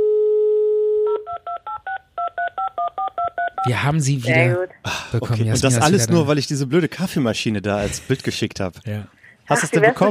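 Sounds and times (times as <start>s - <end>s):
telephone dial tone: 0.0s - 1.7s
speech: 3.6s - 10.0s.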